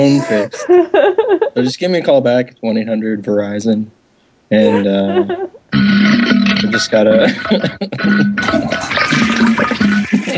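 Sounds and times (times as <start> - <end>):
laughter: 0.0 - 2.5, 4.5 - 10.3
speech: 0.0 - 9.7
toilet flushing: 8.2 - 10.3.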